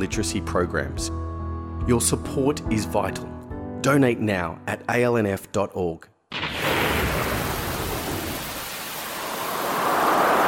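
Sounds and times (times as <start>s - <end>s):
speech: 0.0s - 6.1s
deep rolling rumble of thunder: 6.3s - 10.4s
heavy rain: 6.3s - 10.4s.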